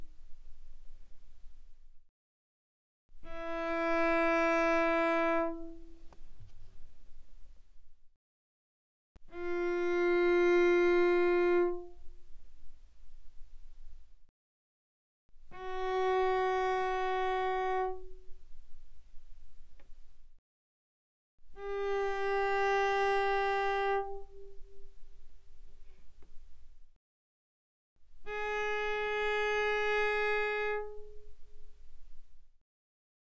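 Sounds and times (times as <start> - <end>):
cello bowed on the A string: 3.3 - 7.6, 9.2 - 13.8, 15.6 - 20.0, 21.6 - 26.4, 28.2 - 32.2.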